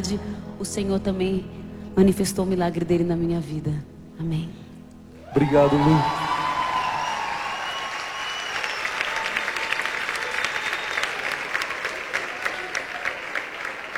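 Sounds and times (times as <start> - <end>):
speech: 0.0 - 4.6, 5.3 - 6.2
audience applause: 5.2 - 13.9.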